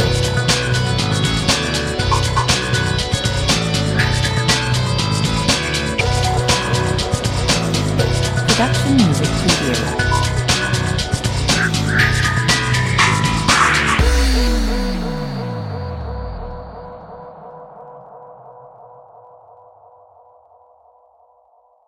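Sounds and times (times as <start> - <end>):
thunder rock music at 120 bpm: 0.0 - 16.3.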